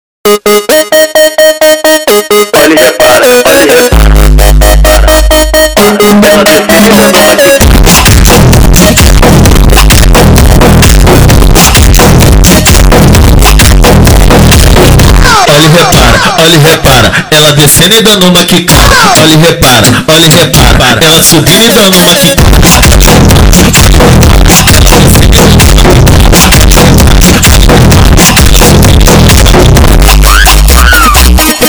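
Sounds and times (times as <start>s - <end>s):
funk batidão remix music: 0.2s - 31.6s.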